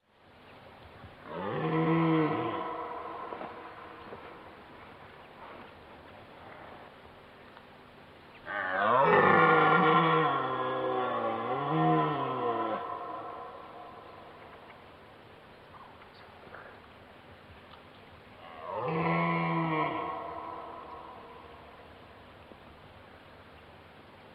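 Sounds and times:
red deer roaring: 1.2s - 4.8s, 8.4s - 14.6s, 18.4s - 21.8s.

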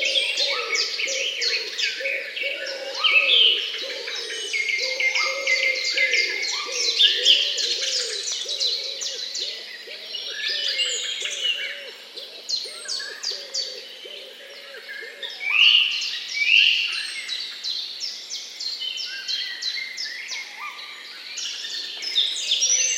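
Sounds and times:
low cooing: 0.0s - 12.0s
several birds twittering: 0.0s - 22.9s.

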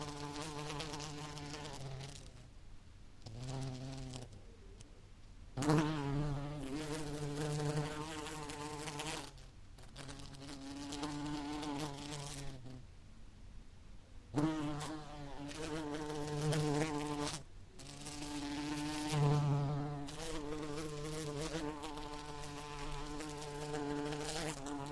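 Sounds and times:
bee buzzing in flight: 0.0s - 2.4s, 3.2s - 4.4s, 5.6s - 12.8s, 14.4s - 24.9s.

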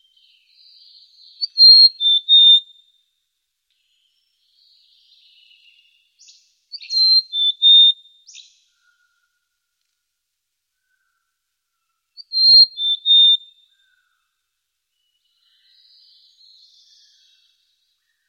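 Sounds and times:
bird whistling song: 0.0s - 2.9s, 4.6s - 9.0s, 12.2s - 14.1s, 15.0s - 18.2s.

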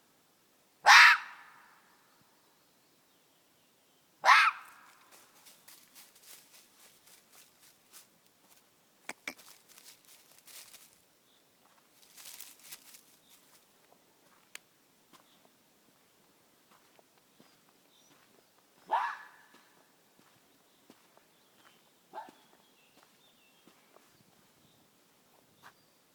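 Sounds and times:
red fox screaming: 0.8s - 1.6s, 4.2s - 4.8s, 18.9s - 19.4s
faint rustling: 4.9s - 8.6s, 9.2s - 11.0s, 11.7s - 13.7s.

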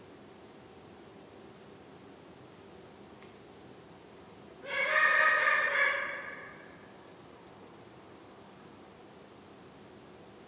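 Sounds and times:
Eurasian eagle-owl call: 4.6s - 6.9s.

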